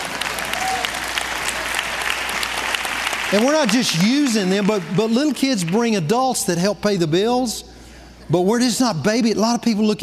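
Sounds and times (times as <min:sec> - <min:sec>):
audience clapping: 0:00.0 - 0:06.2
speech: 0:03.3 - 0:07.7, 0:08.3 - 0:10.0.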